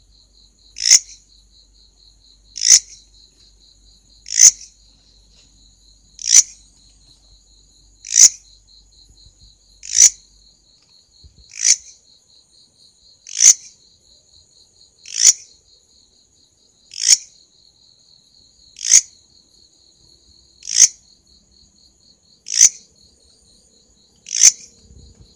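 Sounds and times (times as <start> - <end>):
grasshopper rasps: 0.8 - 1.2, 2.5 - 3.1, 4.2 - 4.8, 6.2 - 6.6, 8.0 - 8.4, 9.8 - 10.2, 11.2 - 12.0, 13.2 - 13.8, 15.0 - 15.6, 16.9 - 17.4, 18.8 - 19.2, 20.6 - 21.0, 22.4 - 22.9, 24.2 - 25.3.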